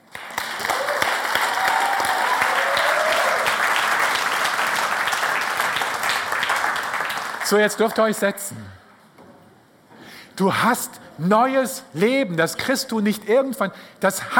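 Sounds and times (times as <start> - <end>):
audience applauding: 0.0 - 8.2
speech: 7.5 - 8.8, 10.4 - 14.3.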